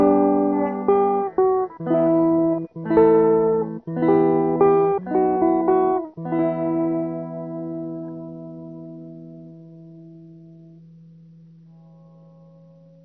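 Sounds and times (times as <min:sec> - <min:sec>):
low-voice electric bandurka ukulele: 0:00.0 - 0:10.7.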